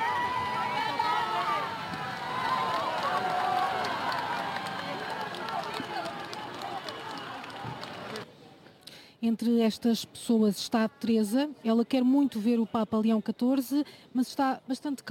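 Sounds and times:
crowd shouting: 0.0s - 8.2s
speech: 9.2s - 15.0s.

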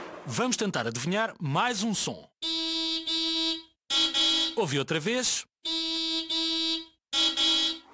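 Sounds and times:
speech: 0.3s - 2.6s, 4.6s - 5.5s
car horn honking: 2.4s - 4.6s, 5.7s - 7.9s.

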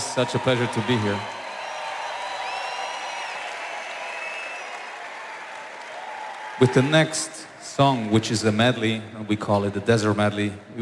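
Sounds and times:
concert audience applause: 0.0s - 8.2s
speech: 0.2s - 1.4s, 6.6s - 10.8s.

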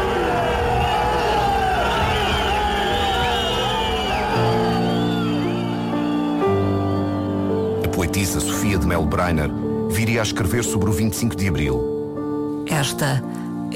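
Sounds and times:
crowd booing: 0.0s - 7.8s
speech: 8.3s - 12.0s, 12.8s - 13.7s.

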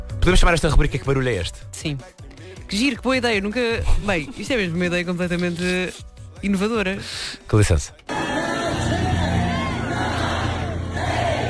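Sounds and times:
speech: 0.2s - 8.2s
crowd counting down for a women's world plank record: 8.1s - 11.4s.

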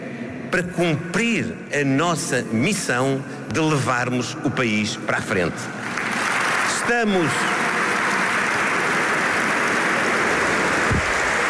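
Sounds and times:
speech: 0.5s - 5.8s, 6.9s - 7.6s
delegates applauding: 5.8s - 11.4s.

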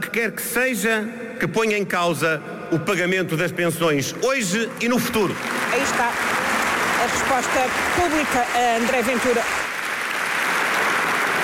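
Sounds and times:
speech: 0.2s - 6.4s, 7.0s - 9.6s
large crowd at congress applauding: 4.8s - 11.4s.

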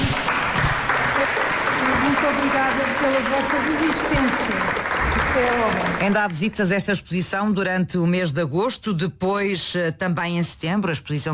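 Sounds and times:
applause at the end of a guided visit: 0.0s - 6.7s
speech: 2.3s - 4.8s, 5.4s - 11.3s.

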